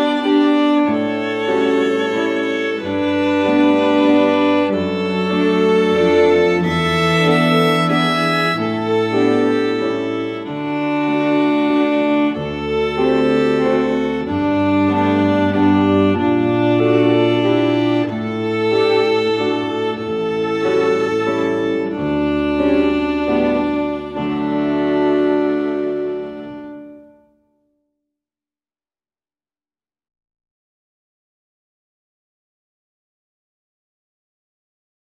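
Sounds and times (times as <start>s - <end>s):
violin ensemble waltz: 0.0s - 27.2s.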